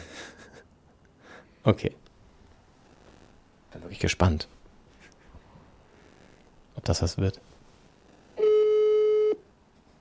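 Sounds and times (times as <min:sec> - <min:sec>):
speech: 0:01.6 - 0:02.0, 0:03.8 - 0:04.6, 0:06.8 - 0:07.5
telephone ringing tone on a call: 0:08.4 - 0:09.4.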